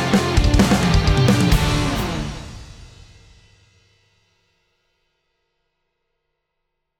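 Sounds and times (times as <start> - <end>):
Ludwig 5x14 Black Beauty snare drum open: 0.1 - 3.5.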